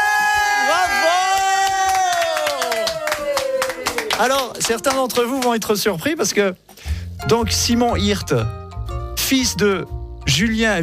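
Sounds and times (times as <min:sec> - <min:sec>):
crowd cheering after a birth announcement: 0:00.0 - 0:04.5
scattered sharp claps: 0:01.6 - 0:05.8
speech: 0:04.2 - 0:06.6, 0:07.2 - 0:08.6, 0:09.3 - 0:10.8.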